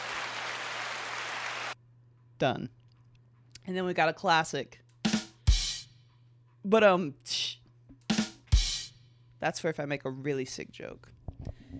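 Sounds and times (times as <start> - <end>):
applause sound effect: 0.0 - 1.8
speech: 2.4 - 2.8, 3.6 - 4.8, 6.6 - 7.6, 9.4 - 11.1.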